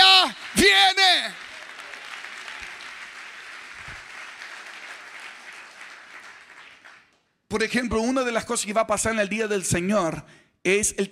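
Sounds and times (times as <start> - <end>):
audience applauding: 0.0 - 7.2
speech: 7.5 - 11.1.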